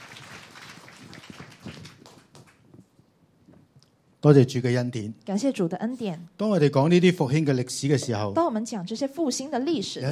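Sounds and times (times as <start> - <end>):
applause: 0.0 - 2.9
speech: 4.2 - 10.1.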